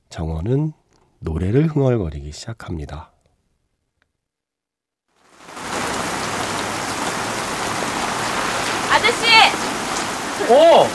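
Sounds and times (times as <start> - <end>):
speech: 0.2 - 3.1, 9.1 - 9.5, 10.4 - 10.9
rain falling: 5.1 - 10.9.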